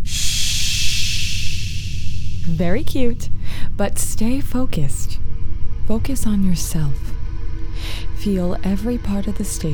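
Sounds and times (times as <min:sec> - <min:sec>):
slow deep breath: 0:00.1 - 0:02.6, 0:03.3 - 0:03.8
speech: 0:02.5 - 0:05.1, 0:05.9 - 0:07.2, 0:08.3 - 0:09.7.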